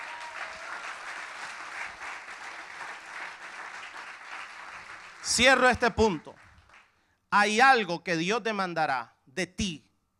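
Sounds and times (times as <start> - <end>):
audience applause: 0.0 - 6.9
speech: 5.2 - 6.4, 7.3 - 9.9.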